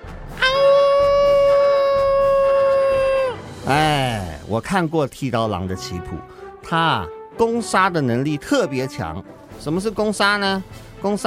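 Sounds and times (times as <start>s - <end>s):
animal's victory howl: 0.4s - 3.4s
speech: 4.5s - 11.2s.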